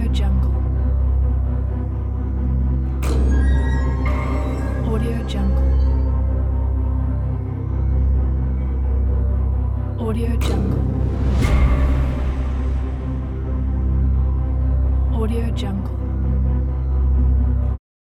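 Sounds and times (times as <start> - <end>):
cinematic background atmosphere: 0.0 - 17.8.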